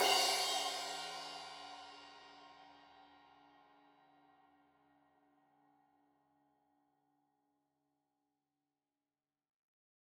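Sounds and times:
15 inch crash cymbal edge hit: 0.0 - 2.3.

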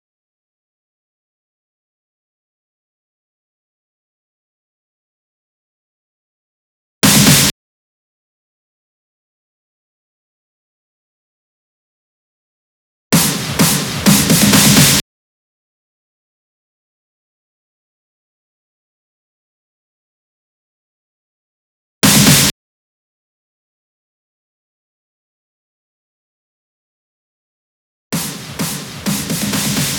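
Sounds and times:
128 BPM drum fills: 7.0 - 7.5, 13.2 - 15.0, 22.0 - 22.5, 28.2 - 29.9.

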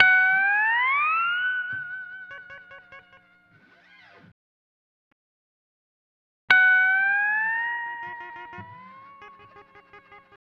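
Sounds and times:
dry steel guitar in F sharp: 0.0 - 3.7, 6.6 - 10.4.

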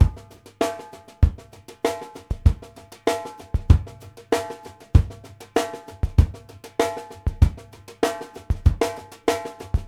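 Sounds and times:
straight drum beat: 0.0 - 9.8.

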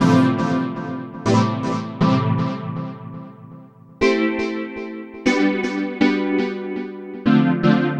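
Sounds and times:
deep house chord: 0.0 - 7.9.

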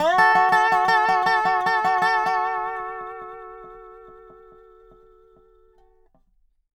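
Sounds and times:
country music loop: 0.0 - 5.1.

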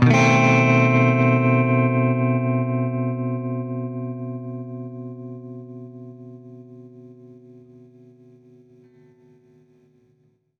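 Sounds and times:
baritone guitar chord C7b5: 0.0 - 3.0.

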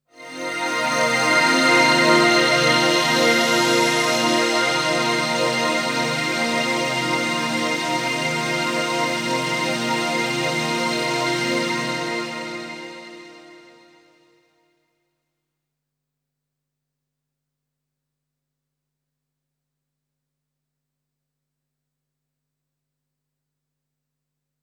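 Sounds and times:
Triton synthesizer pad playing a C minor seventh chord: 0.1 - 14.2.

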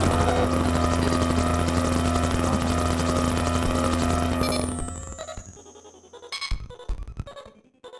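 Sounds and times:
battered synth: 0.0 - 5.3.

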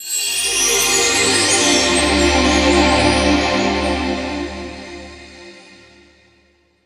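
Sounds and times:
NRG synth pad: 0.6 - 6.3.

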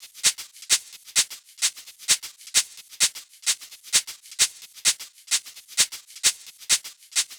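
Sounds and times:
shaker rhythm loop: 0.0 - 7.3.

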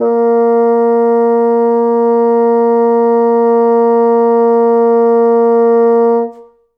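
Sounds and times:
bassoon note A sharp 2: 0.0 - 6.7.

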